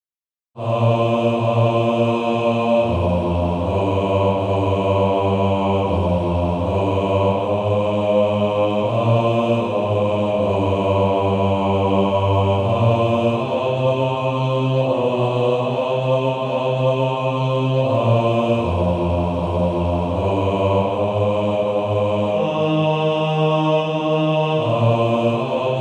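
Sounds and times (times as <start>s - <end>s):
male choir singing bass: 0.6s - 25.8s.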